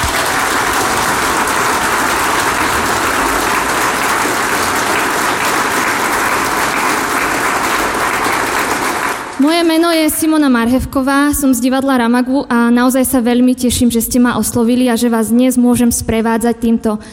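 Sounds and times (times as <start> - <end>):
audience applause: 0.0 - 9.8
speech: 9.5 - 17.1.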